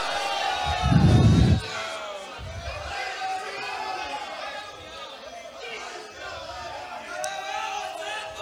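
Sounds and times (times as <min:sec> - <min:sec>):
audience shouting glory to God: 0:00.0 - 0:08.4
heavy low thump: 0:00.7 - 0:01.7, 0:02.4 - 0:02.8.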